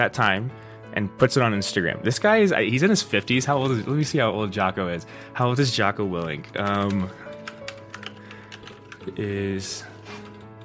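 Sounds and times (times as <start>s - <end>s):
speech: 0.0s - 7.2s, 9.0s - 9.9s
typing on a computer keyboard: 6.2s - 9.2s.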